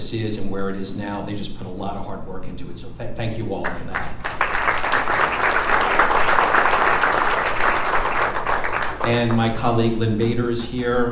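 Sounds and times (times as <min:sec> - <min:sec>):
speech: 0:00.1 - 0:04.3, 0:09.0 - 0:11.1
audience applause: 0:03.7 - 0:09.4.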